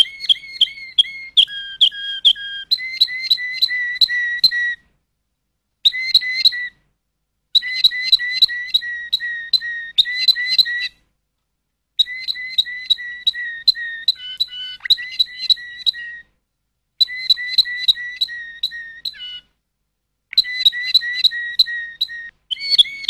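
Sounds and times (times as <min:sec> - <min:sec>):
Waterslager canary song: 0:00.0 - 0:04.8, 0:05.8 - 0:06.8, 0:07.5 - 0:11.0, 0:12.0 - 0:16.4, 0:17.0 - 0:19.6, 0:20.3 - 0:23.0.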